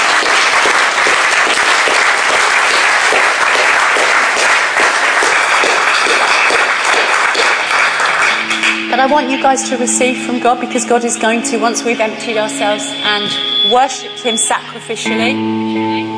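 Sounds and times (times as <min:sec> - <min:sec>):
audience clapping: 0:00.0 - 0:10.3
speech: 0:08.9 - 0:16.1.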